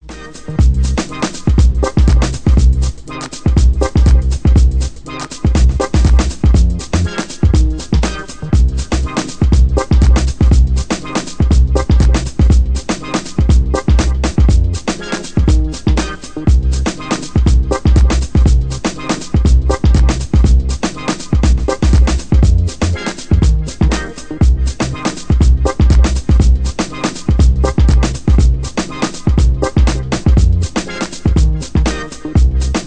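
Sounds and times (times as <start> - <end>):
instrumental music: 0.0 - 32.8.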